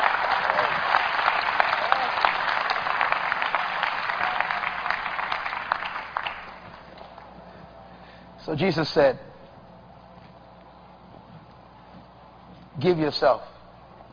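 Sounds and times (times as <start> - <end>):
audience clapping hands: 0.0 - 7.4
speech: 8.5 - 9.3, 12.8 - 13.5.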